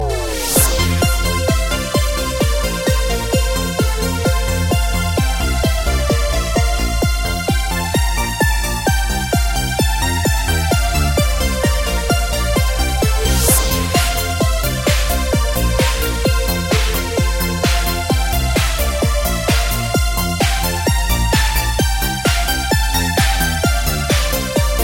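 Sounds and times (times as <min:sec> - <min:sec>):
techno music: 0:00.0 - 0:24.8.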